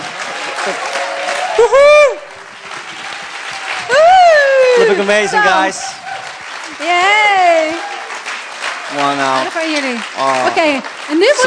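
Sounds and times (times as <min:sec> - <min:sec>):
crowd applause: 0:00.0 - 0:11.4
whoops and cheers: 0:00.2 - 0:06.4, 0:07.0 - 0:08.9
speech: 0:00.7 - 0:02.2, 0:05.0 - 0:06.0, 0:06.8 - 0:07.9, 0:08.9 - 0:11.4.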